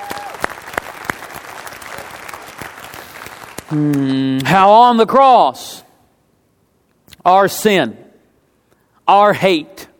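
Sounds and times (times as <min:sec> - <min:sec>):
audience applause: 0:00.0 - 0:03.8
speech: 0:03.7 - 0:05.8, 0:07.2 - 0:08.0, 0:09.1 - 0:09.9.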